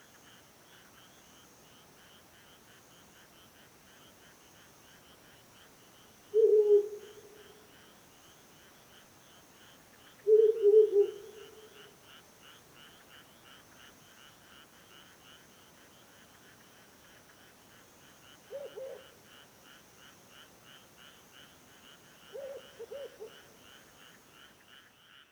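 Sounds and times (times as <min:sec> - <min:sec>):
pulsing frog or insect chorus: 0:00.0 - 0:25.3
owl hoots: 0:06.3 - 0:07.6, 0:10.3 - 0:11.8, 0:18.5 - 0:19.1, 0:22.4 - 0:23.4.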